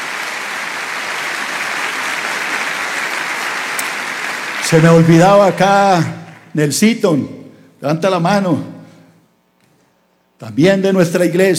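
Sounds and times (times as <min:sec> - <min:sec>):
audience applause: 0:00.0 - 0:06.5
speech: 0:04.7 - 0:08.7, 0:10.4 - 0:11.5.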